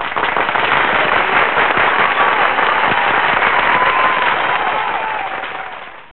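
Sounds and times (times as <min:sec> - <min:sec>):
clapping: 0:00.0 - 0:06.1.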